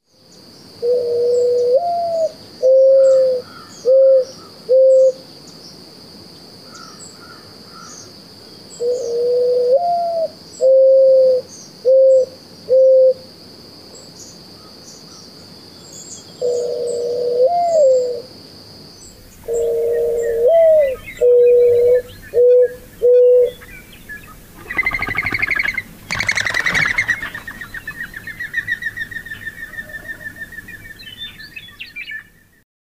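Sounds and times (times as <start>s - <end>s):
mourning dove song: 0.6s - 5.6s, 8.6s - 13.3s, 15.4s - 18.3s, 18.9s - 32.6s.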